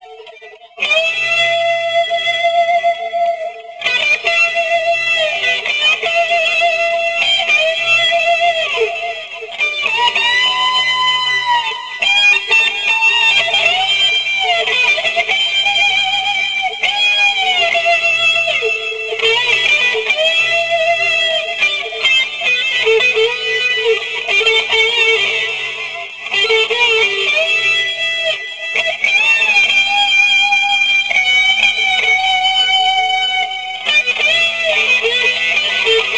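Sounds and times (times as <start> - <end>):
guitar: 0.0 - 36.1.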